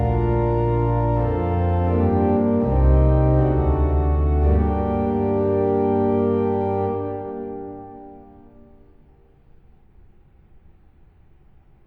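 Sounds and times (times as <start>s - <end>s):
organ playing hymns: 0.0s - 8.8s.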